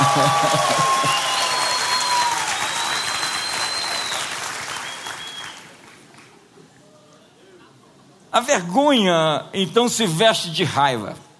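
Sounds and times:
laughter: 0.0s - 1.4s
audience clapping hands: 0.0s - 6.5s
speech: 0.2s - 0.8s, 8.4s - 11.2s.

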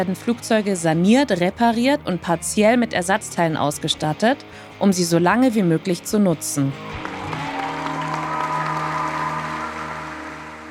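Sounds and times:
speech: 0.0s - 7.0s
applause clapping: 6.9s - 10.6s.

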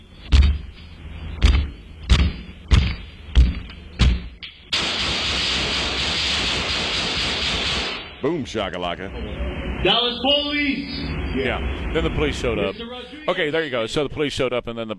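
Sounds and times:
broad constant hiss: 0.0s - 13.8s
men kicking a door: 0.3s - 4.4s
speech: 8.2s - 14.9s.

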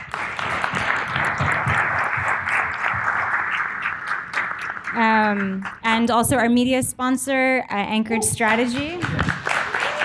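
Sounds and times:
audience applause: 0.0s - 5.8s, 8.4s - 10.0s
speech: 5.0s - 9.2s.

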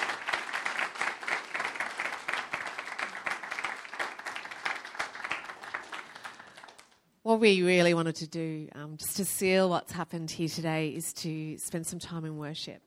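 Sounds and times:
audience applause: 0.0s - 7.0s
speech: 7.3s - 12.8s.

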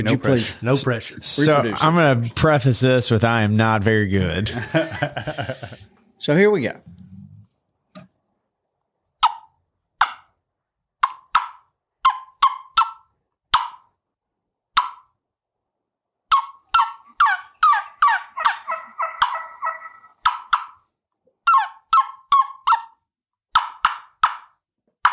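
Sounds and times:
speech: 0.0s - 6.9s
laughter: 4.4s - 6.0s, 18.4s - 20.1s
imitation of a hen turkey yelping softly: 9.2s - 10.3s, 11.0s - 13.8s, 16.3s - 20.8s, 21.4s - 22.9s.

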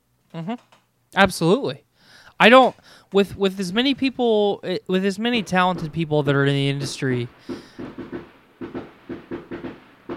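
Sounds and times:
speech: 0.3s - 8.0s
fireworks going off outside: 5.2s - 10.1s.

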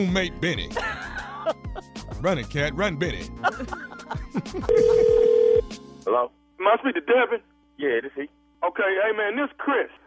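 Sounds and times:
speech: 0.0s - 5.3s, 6.1s - 10.0s
laughter: 0.7s - 2.5s, 3.2s - 5.1s
telephone dialing for a prank call: 4.7s - 5.6s.

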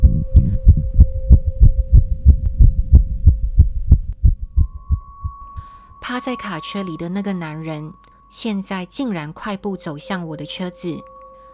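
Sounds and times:
pounding heartbeat sound effect: 0.0s - 5.5s
speech: 6.1s - 11.1s.

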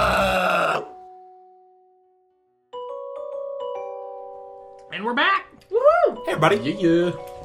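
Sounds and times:
voice imitating a creature's screech: 0.0s - 0.9s
speech: 4.9s - 7.3s.

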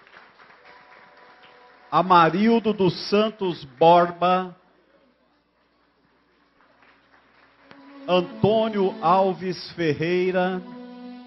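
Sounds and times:
audience applause: 0.0s - 4.2s, 5.7s - 8.8s
speech: 1.9s - 4.6s, 8.1s - 10.8s.

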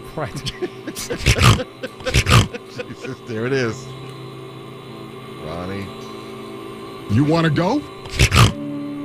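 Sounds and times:
laughter: 0.2s - 3.5s
speech: 0.2s - 4.0s, 5.4s - 6.0s, 7.1s - 8.6s
pig sound: 1.1s - 2.6s, 8.1s - 8.6s.

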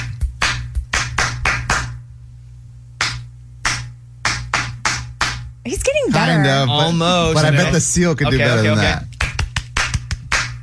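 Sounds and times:
hands clapping a rhythmic beat: 0.0s - 2.0s, 3.0s - 5.5s, 8.6s - 10.6s
speech: 5.7s - 9.1s.

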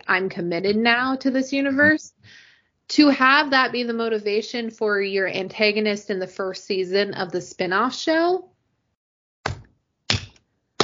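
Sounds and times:
speech: 0.1s - 8.5s
hands clapping: 9.5s - 10.8s.

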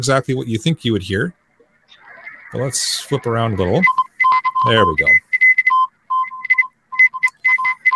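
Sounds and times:
speech: 0.0s - 1.4s, 2.5s - 4.0s, 4.6s - 5.2s
Morse code beeps on HF radio: 3.4s - 7.9s.

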